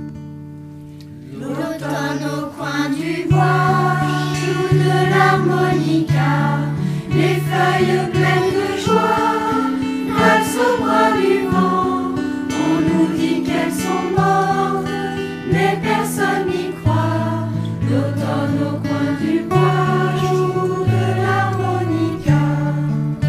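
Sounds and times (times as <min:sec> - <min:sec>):
parents and children choir singing: 0:01.2 - 0:23.1.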